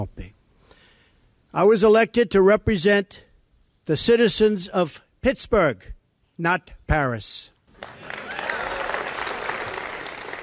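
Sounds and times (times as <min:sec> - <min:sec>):
speech: 0:00.0 - 0:00.3, 0:01.5 - 0:03.3, 0:03.9 - 0:08.2
outdoor crowd applause in the Rose Garden: 0:07.7 - 0:10.4
faint cheering: 0:07.8 - 0:10.4.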